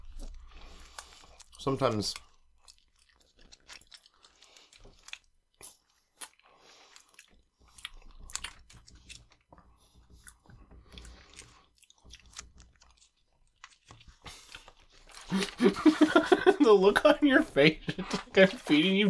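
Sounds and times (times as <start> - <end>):
sticky chewing of a mouthful of peanut butter: 0.0 - 16.4
speech: 1.6 - 2.3, 16.8 - 19.0
laughter: 15.3 - 18.6.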